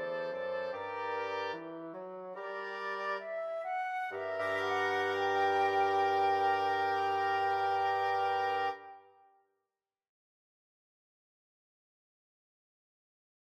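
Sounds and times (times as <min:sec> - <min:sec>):
flexible mixed ensemble of 4 players: 0:00.0 - 0:08.8.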